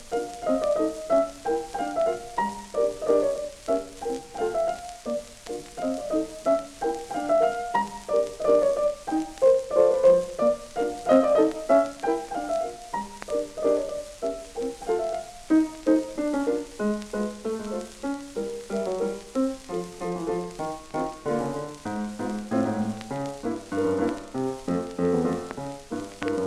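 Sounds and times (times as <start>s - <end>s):
polka music: 0.1s - 26.4s.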